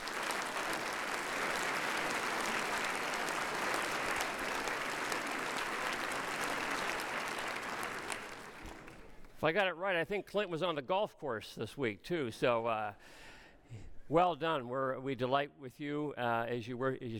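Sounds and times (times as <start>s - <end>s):
round of applause: 0.0s - 9.2s
speech: 9.4s - 17.1s.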